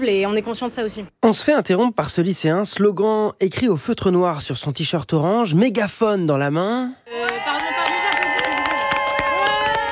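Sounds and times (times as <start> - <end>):
speech: 0.0 - 7.5
hands clapping: 7.3 - 9.9.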